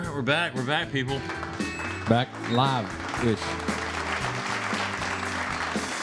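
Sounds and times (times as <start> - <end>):
speech: 0.2 - 3.6
two people clapping: 1.1 - 6.0.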